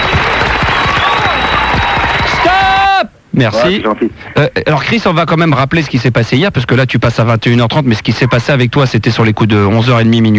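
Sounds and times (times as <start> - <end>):
group applause: 0.0 - 3.0
speech: 3.4 - 10.3.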